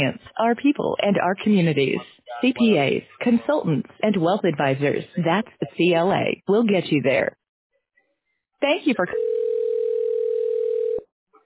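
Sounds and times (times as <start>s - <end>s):
speech: 0.0s - 7.4s, 8.6s - 9.4s
steady telephone ringing tone: 9.1s - 11.1s.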